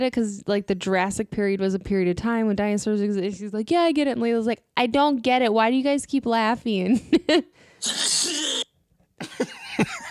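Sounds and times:
speech: 0:00.0 - 0:10.0
sneeze sound effect: 0:07.8 - 0:08.7.

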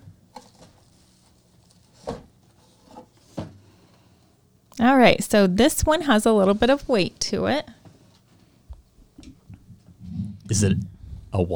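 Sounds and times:
gift box being opened with handling knocks and rustles: 0:01.9 - 0:03.6
speech: 0:04.8 - 0:07.8, 0:10.5 - 0:11.5.

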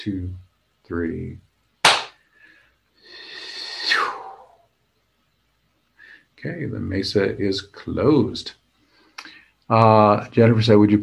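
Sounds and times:
speech: 0:00.0 - 0:01.5, 0:06.4 - 0:08.6, 0:09.7 - 0:11.0
hand clapping: 0:01.8 - 0:02.2.

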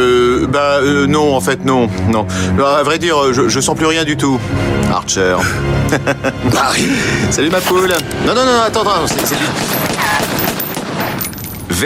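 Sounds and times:
speech: 0:00.5 - 0:10.5
laughter: 0:05.4 - 0:07.7, 0:09.0 - 0:10.0
rapid gunfire: 0:09.0 - 0:11.3.

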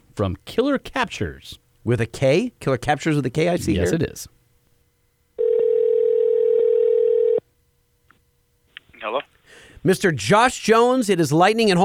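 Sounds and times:
speech: 0:00.2 - 0:04.4, 0:09.0 - 0:11.8
telephone dial tone while placing call: 0:05.4 - 0:07.4.

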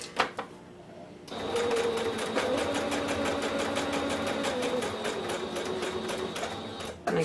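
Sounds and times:
sewing machine doing a straight stitch around fabric edge: 0:01.3 - 0:07.0.

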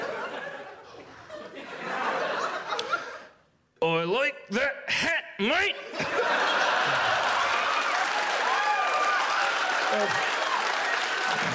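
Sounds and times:
laughter: 0:00.0 - 0:03.4, 0:05.7 - 0:08.3, 0:09.3 - 0:11.5
speech: 0:04.0 - 0:05.9
audience applause: 0:06.3 - 0:11.5
crowd cheers: 0:06.4 - 0:11.5.

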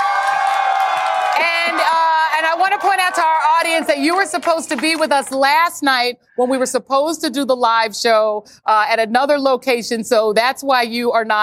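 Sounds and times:
crowd cheering: 0:00.0 - 0:05.4
speech: 0:01.4 - 0:02.0, 0:02.6 - 0:11.4.

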